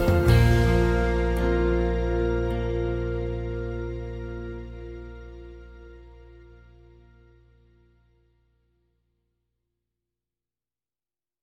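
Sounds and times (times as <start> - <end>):
instrumental music: 0.0 - 8.0.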